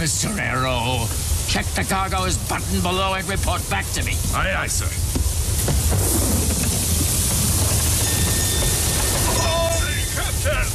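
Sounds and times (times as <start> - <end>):
speech: 0.0 - 5.1
heavy rain hissing in a thunderstorm: 0.0 - 10.7
deep continuous rumble of thunder: 5.1 - 9.9.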